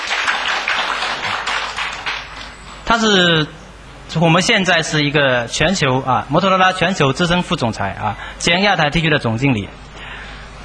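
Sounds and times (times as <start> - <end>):
audience applause welcoming a senior Motorola executive at a public event: 0.0 - 2.5
speech: 2.9 - 9.9.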